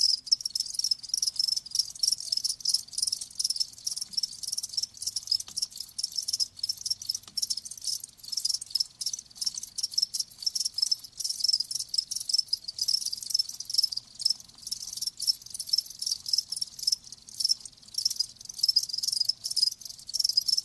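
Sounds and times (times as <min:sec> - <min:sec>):
crickets chirping in a chorus: 0:00.0 - 0:20.6.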